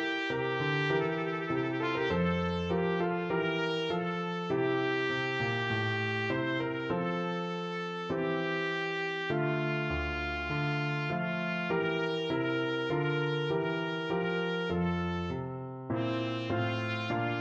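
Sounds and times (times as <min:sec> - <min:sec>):
trumpet playing a bourree: 0:00.0 - 0:15.4, 0:16.0 - 0:17.4.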